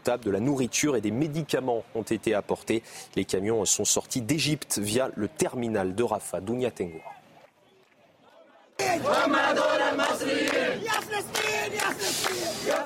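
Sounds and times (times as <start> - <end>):
speech: 0.0 - 7.2
crowd of volunteers chanting slogans for Palestine: 8.0 - 12.8.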